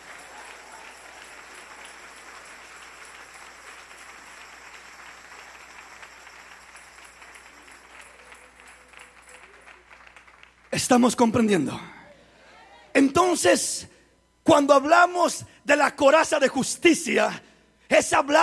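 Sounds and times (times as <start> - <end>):
audience applause: 0.0 - 10.8
speech: 10.8 - 12.0, 13.2 - 13.9, 14.5 - 18.4.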